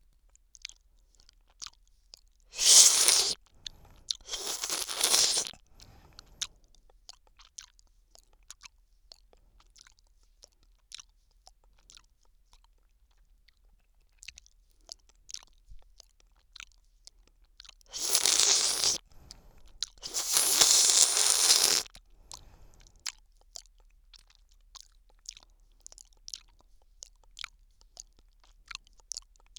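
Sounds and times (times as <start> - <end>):
person licking ice cream in the left ear: 2.5 - 6.5, 17.9 - 24.3.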